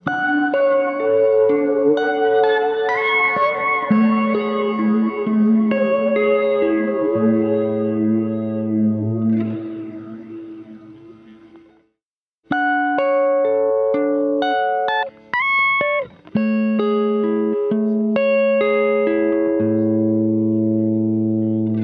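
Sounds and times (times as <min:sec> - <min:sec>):
guitar: 0:00.0 - 0:21.8.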